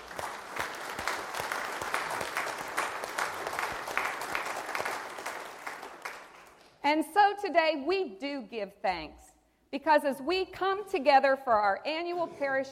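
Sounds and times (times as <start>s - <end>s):
audience applause: 0.0s - 6.8s
speech: 6.9s - 12.6s.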